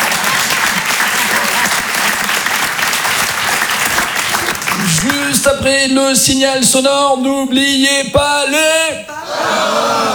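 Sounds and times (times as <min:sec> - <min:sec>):
audience applause: 0:00.0 - 0:05.5
speech: 0:05.4 - 0:10.1.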